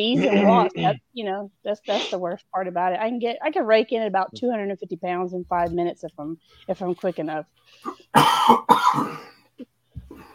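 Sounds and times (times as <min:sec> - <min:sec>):
person coughing after water went down the wrong pipe: 0:00.0 - 0:01.0, 0:07.9 - 0:09.5
speech: 0:00.0 - 0:09.4.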